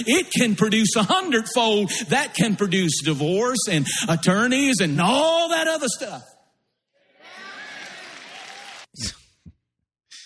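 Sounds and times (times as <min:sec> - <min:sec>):
speech: 0:00.0 - 0:06.4
audience clapping: 0:07.2 - 0:09.0.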